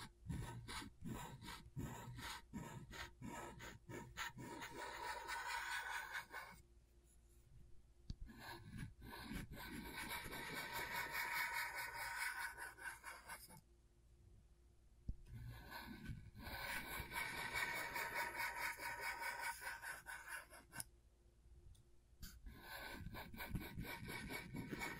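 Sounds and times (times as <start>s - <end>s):
scratchboard scratching: 0.0s - 6.6s, 8.5s - 13.6s, 15.6s - 20.7s, 22.9s - 24.9s.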